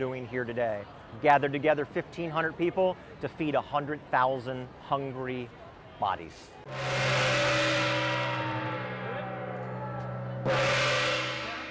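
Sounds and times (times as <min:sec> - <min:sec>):
speech: 0:00.0 - 0:07.6
gong struck: 0:06.7 - 0:11.6.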